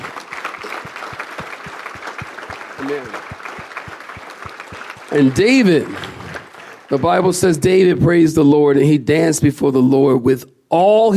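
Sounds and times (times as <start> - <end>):
audience clapping hands: 0.0 - 7.9
speech: 2.8 - 3.4, 5.1 - 6.2, 6.9 - 11.1.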